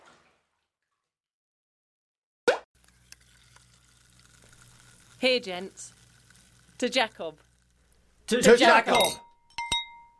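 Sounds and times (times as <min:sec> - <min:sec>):
bubbly seltzer water poured: 0:02.8 - 0:09.2
speech: 0:05.2 - 0:06.0, 0:06.8 - 0:07.5, 0:08.3 - 0:09.2.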